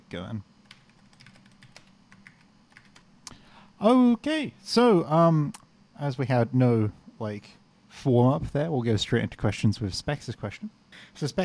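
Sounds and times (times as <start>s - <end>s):
speech: 0.1s - 0.5s, 3.8s - 11.4s
typing on a computer keyboard: 0.6s - 3.0s.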